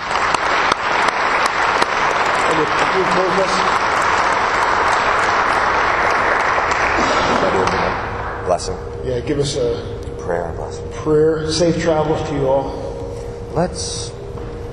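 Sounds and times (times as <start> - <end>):
crowd applause: 0.0 - 8.4
speech: 3.0 - 3.8, 8.5 - 12.8, 13.5 - 14.1.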